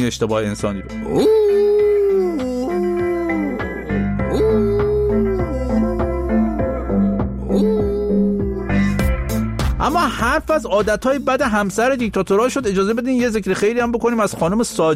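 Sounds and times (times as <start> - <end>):
speech: 0.0 - 1.8, 10.0 - 14.9
dog howling and whimpering: 1.1 - 8.7.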